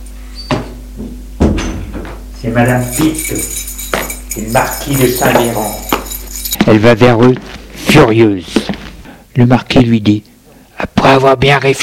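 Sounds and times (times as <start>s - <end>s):
speech: 2.4s - 3.7s, 4.4s - 5.8s, 6.7s - 8.7s, 9.4s - 11.8s
keys in a lock: 2.6s - 6.6s.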